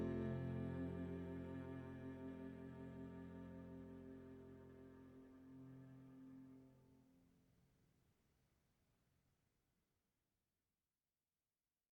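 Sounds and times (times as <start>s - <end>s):
piano: 0.0s - 6.6s
cello: 0.0s - 6.9s.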